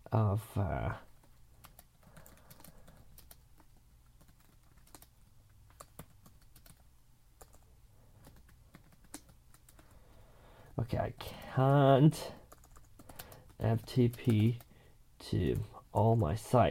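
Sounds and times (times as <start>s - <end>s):
speech: 0.1s - 1.1s, 10.9s - 12.4s, 13.6s - 16.6s
typing a support case on a computer keyboard: 1.1s - 10.0s, 11.3s - 14.7s.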